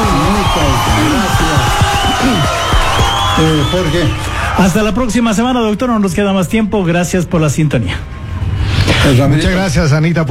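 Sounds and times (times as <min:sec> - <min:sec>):
clapping: 0:00.0 - 0:04.2
crowd cheering and whooping: 0:00.0 - 0:05.2
speech: 0:03.4 - 0:08.2, 0:09.0 - 0:10.2.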